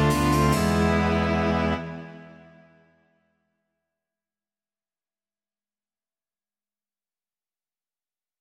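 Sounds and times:
string quartet with basso continuo: 0.0 - 2.6.

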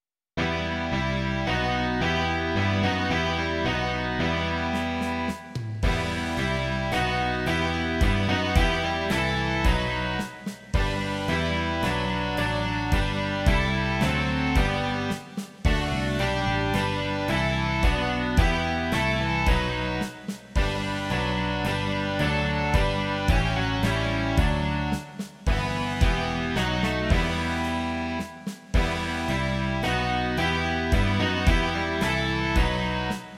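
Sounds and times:
rock music: 0.4 - 33.3.

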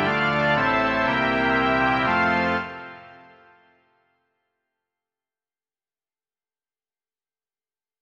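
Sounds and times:
organ: 0.0 - 3.8.

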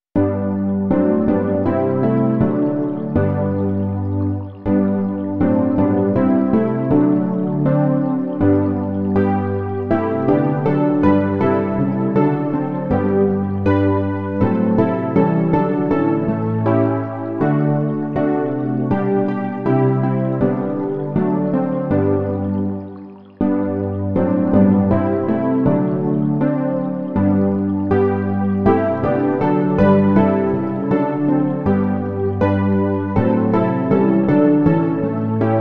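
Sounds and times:
electric piano: 0.2 - 35.5.

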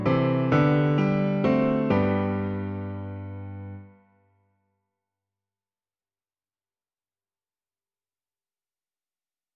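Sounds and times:
piano: 0.0 - 4.4.

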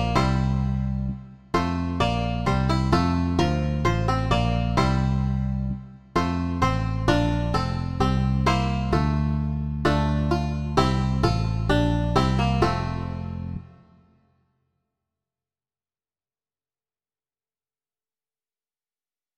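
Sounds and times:
banjo: 0.0 - 13.8
bass guitar: 0.0 - 13.8.

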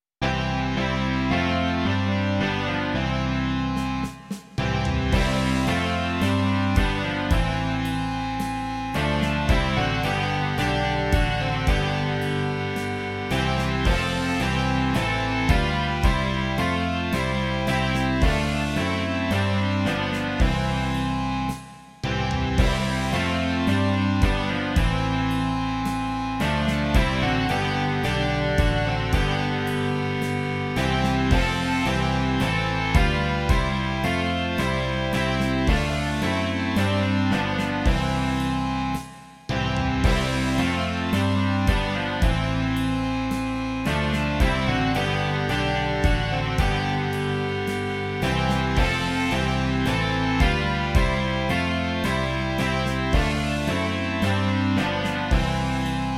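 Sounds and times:
rock music: 0.2 - 56.1.

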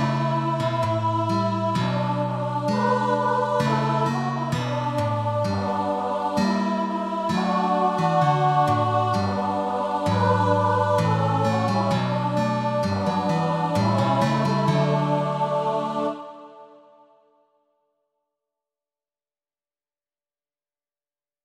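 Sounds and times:
guitar: 0.0 - 16.1
children's choir singing: 0.0 - 17.4.

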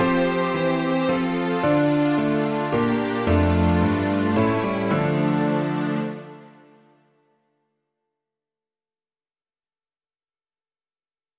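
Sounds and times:
string orchestra: 0.0 - 7.0
piano: 0.0 - 7.5.

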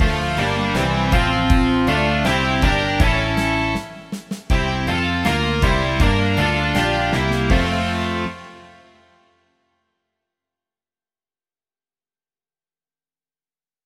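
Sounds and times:
rock music: 0.0 - 9.0.

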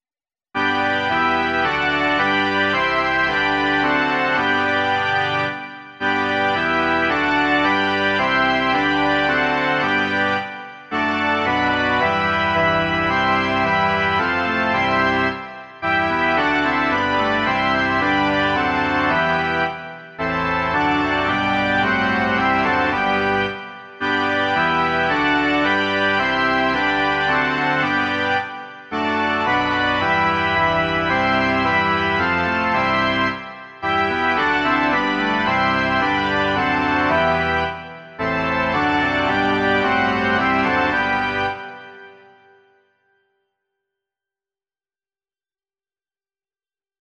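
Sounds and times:
organ: 0.6 - 42.9.

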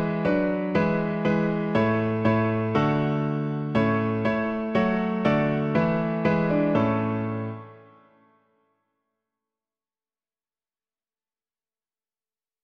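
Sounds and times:
piano: 0.0 - 8.7.

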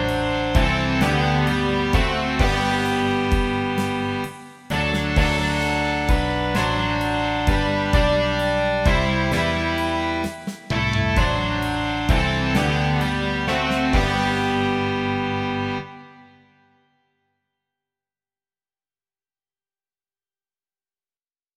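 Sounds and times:
rock music: 0.0 - 16.3.

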